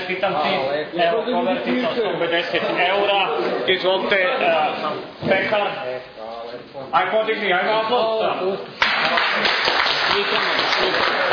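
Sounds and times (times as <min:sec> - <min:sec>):
speech: 0:00.1 - 0:11.3
applause for a prize winner at an awards giveaway: 0:08.8 - 0:11.3.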